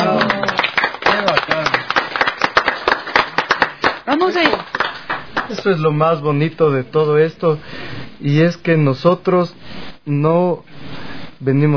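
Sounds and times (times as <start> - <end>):
audience applause: 0.0 - 5.6
speech: 4.2 - 4.7, 5.6 - 10.7, 11.4 - 11.7.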